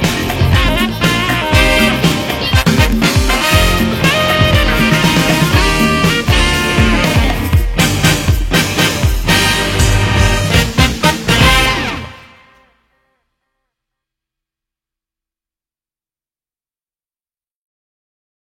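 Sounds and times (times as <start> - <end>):
television music: 0.0 - 12.4.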